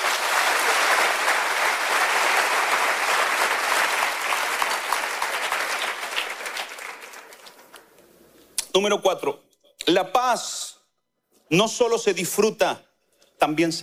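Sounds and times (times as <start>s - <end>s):
loud audience applause: 0.0s - 7.9s
speech: 8.8s - 10.6s, 11.5s - 13.8s.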